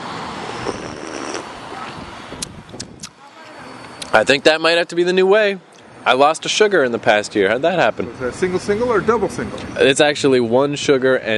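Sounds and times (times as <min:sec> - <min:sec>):
person slurping a hot sweetened coffee: 0:00.5 - 0:02.0
speech: 0:04.2 - 0:11.3.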